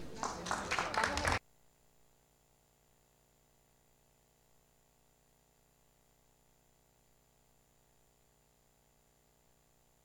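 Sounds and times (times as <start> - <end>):
crowd applauding: 0.0 - 1.4
murmur of voices: 0.0 - 1.4.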